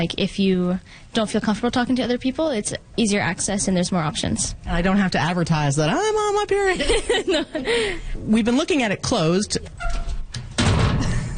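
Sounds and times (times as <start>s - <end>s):
speech: 0.0s - 10.1s
laughter: 6.7s - 8.1s, 11.0s - 11.3s
metal locker clunk: 9.8s - 11.3s.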